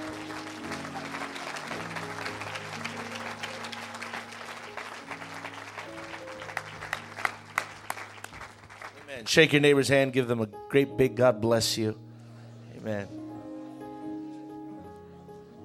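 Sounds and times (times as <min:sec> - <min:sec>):
audience clapping hands: 0:00.0 - 0:09.3
sustained organ-like chords: 0:00.0 - 0:15.6
speech: 0:09.2 - 0:12.1, 0:12.8 - 0:13.2.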